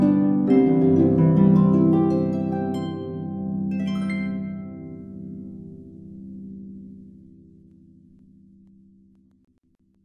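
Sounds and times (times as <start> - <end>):
Christmas carol on the harp: 0.0 - 6.6.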